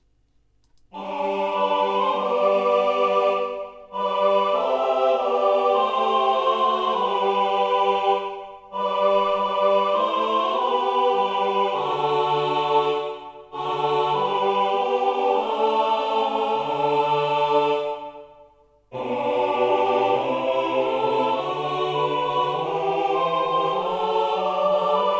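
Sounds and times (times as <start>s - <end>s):
tutti choir chanting: 0.9s - 25.1s.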